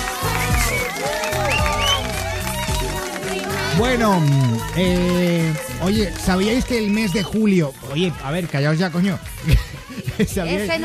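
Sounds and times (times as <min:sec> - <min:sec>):
whoops: 0:00.0 - 0:05.8
audience applause: 0:00.0 - 0:10.8
low pulsing musical bass: 0:00.0 - 0:10.8
overlapping voices: 0:00.0 - 0:10.8
speech: 0:03.8 - 0:10.8
laughter: 0:09.3 - 0:10.8.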